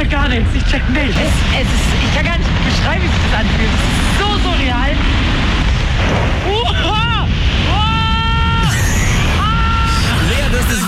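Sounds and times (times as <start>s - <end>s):
rushing wind: 0.0s - 10.8s
speech: 0.1s - 7.0s
person screaming during a bungee jump: 6.5s - 10.8s.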